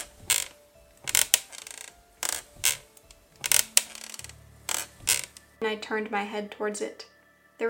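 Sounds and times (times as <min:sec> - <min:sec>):
wooden rocking chair creaking: 0:00.0 - 0:05.6
speech: 0:05.6 - 0:07.6.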